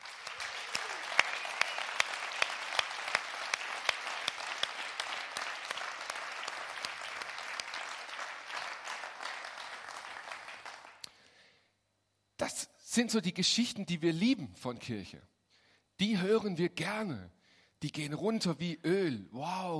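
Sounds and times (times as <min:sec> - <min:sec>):
audience applause: 0:00.0 - 0:11.1
speech: 0:13.0 - 0:15.4, 0:16.0 - 0:19.7.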